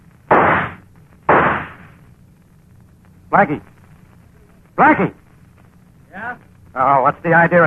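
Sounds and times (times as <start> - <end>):
gunshots: 0.3 - 2.0
speech: 3.3 - 3.7, 4.8 - 5.2, 6.3 - 7.6.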